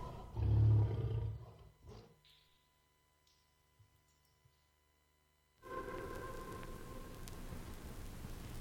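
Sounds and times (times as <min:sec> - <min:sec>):
big cat roaring: 0:00.0 - 0:01.7.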